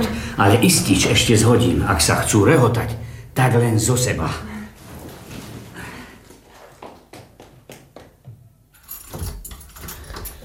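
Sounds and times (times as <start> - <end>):
speech: 0.4 - 4.5
keys jangling: 8.8 - 10.4.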